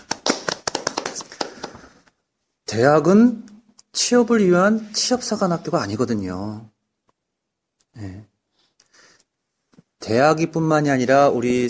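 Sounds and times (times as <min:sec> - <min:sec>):
hand clapping: 0:00.0 - 0:02.1
speech: 0:02.7 - 0:06.7, 0:08.0 - 0:08.3, 0:10.1 - 0:11.6.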